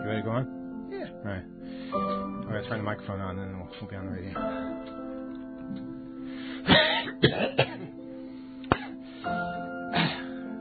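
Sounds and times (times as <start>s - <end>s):
speech: 0.1s - 5.0s, 5.7s - 6.0s, 6.6s - 7.8s
person coughing: 6.7s - 8.0s, 8.7s - 9.0s, 9.9s - 10.4s
throat clearing: 6.7s - 8.0s, 8.7s - 9.0s.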